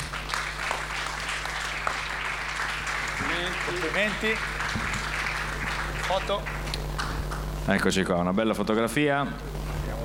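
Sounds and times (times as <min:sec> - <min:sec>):
audience applause: 0:00.0 - 0:07.5
speech: 0:03.7 - 0:04.9, 0:06.1 - 0:06.7, 0:07.7 - 0:09.5.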